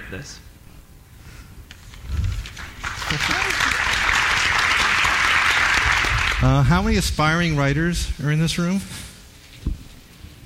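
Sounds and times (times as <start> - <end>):
speech: 0.1 - 0.5, 3.1 - 3.7, 6.4 - 9.0
students applauding in classroom: 2.4 - 6.7.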